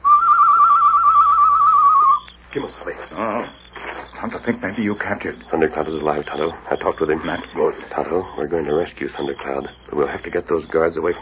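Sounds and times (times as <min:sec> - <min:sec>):
person whistling a bird call: 0:00.0 - 0:02.3
speech: 0:02.5 - 0:03.6, 0:04.2 - 0:11.2.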